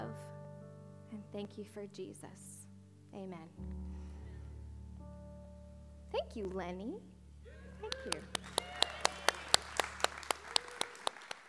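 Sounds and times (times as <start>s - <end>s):
speech: 1.2s - 4.0s, 6.1s - 7.1s, 7.8s - 8.5s
hand claps following a prayer: 7.8s - 11.4s.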